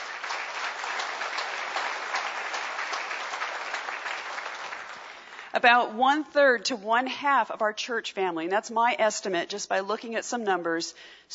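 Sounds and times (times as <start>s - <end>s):
audience applause: 0.0s - 5.5s
speech: 5.6s - 11.3s.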